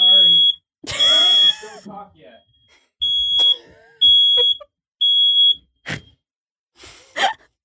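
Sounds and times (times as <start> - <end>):
smoke alarm beeping: 0.0 - 1.8, 2.4 - 5.8.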